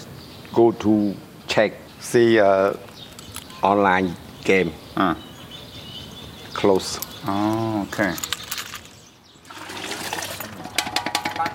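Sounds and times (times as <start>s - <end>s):
speech: 0.6s - 2.9s, 3.6s - 5.3s, 6.6s - 8.3s
man washing pots with running water: 9.4s - 11.5s.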